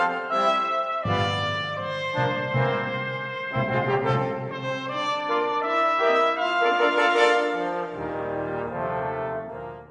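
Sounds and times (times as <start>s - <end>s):
brass choir playing: 0.0s - 9.9s.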